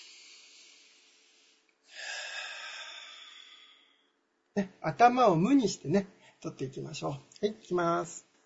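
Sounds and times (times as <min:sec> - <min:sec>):
deep breath taken before a task: 0:00.0 - 0:04.2
speech: 0:04.6 - 0:08.3.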